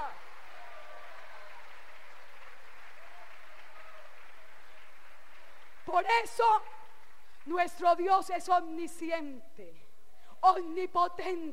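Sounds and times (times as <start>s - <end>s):
audience applauding: 0.0s - 7.5s
speech: 6.0s - 6.7s, 7.4s - 9.8s, 10.4s - 11.5s.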